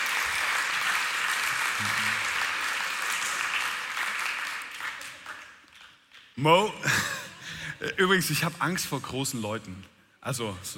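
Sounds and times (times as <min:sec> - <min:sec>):
audience applause: 0:00.0 - 0:06.3
speech: 0:06.4 - 0:07.2, 0:07.8 - 0:10.7.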